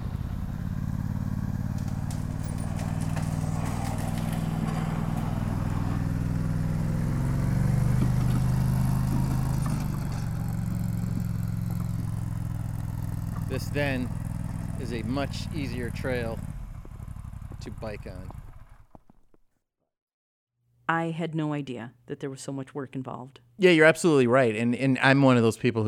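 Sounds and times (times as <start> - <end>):
tracked four-wheeler engine pulling a heavy trail roller: 0.0 - 19.3
speech: 13.6 - 14.2, 14.8 - 16.5, 17.6 - 18.4, 20.9 - 25.8.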